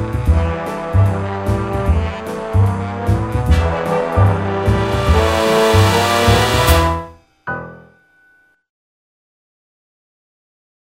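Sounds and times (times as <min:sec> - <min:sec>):
jazz music: 0:00.0 - 0:07.2.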